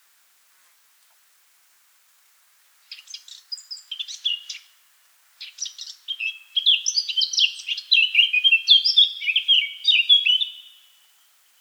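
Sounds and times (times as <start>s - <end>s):
Eurasian blackcap singing: 2.9s - 4.7s, 5.4s - 10.7s.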